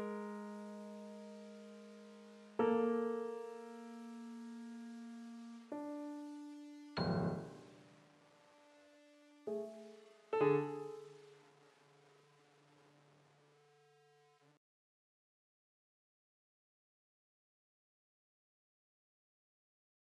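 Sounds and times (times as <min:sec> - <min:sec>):
piano: 0:00.0 - 0:11.7.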